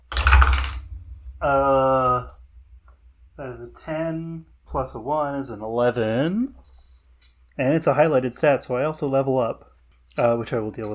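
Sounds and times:
dice rolling: 0.1s - 0.8s
speech: 1.4s - 2.3s, 3.6s - 6.6s, 7.6s - 10.9s.

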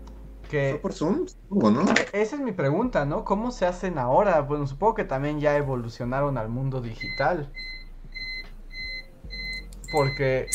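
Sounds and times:
speech: 0.5s - 7.8s, 9.9s - 10.5s
UPS battery backup beeping alarm: 7.0s - 10.5s.

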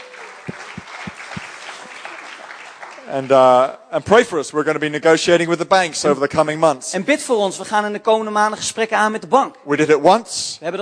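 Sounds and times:
audience applause: 0.0s - 3.8s
speech: 3.1s - 10.7s.

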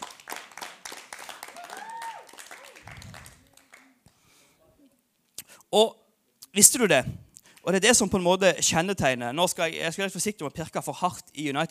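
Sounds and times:
applause: 0.0s - 4.2s
speech: 5.7s - 6.0s, 6.6s - 11.6s.

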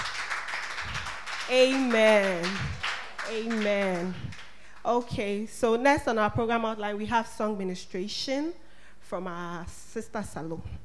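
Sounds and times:
people clapping: 0.0s - 5.4s
speech: 1.5s - 10.8s.

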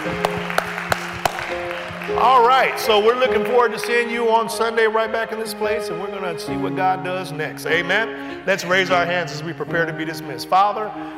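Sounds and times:
audience hand clapping: 0.0s - 4.5s
speech: 2.2s - 11.1s.

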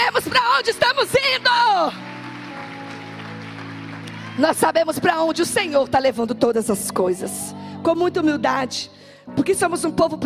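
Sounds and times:
audience applause: 0.0s - 5.3s
speech: 0.2s - 2.1s, 4.4s - 10.2s.

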